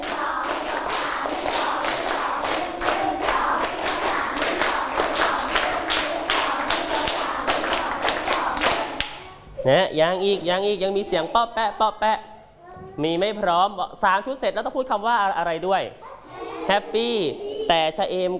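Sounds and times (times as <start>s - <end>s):
children clapping hands in sets: 0.0s - 9.2s
speech: 9.6s - 12.3s, 13.0s - 16.0s, 16.7s - 18.3s.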